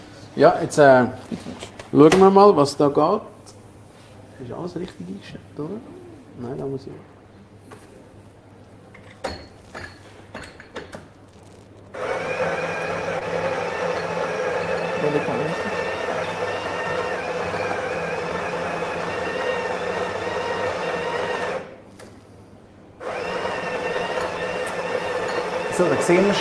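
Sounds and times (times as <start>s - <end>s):
speech: 0.4s - 3.3s, 4.4s - 7.1s, 25.8s - 26.3s
espresso machine whirring and humming while brewing coffee: 11.9s - 21.8s, 23.0s - 26.3s.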